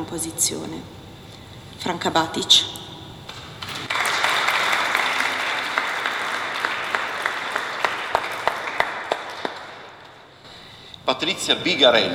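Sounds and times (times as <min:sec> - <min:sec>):
speech: 0:00.0 - 0:01.0, 0:01.8 - 0:02.9, 0:11.1 - 0:12.1
audience applauding: 0:03.7 - 0:10.3.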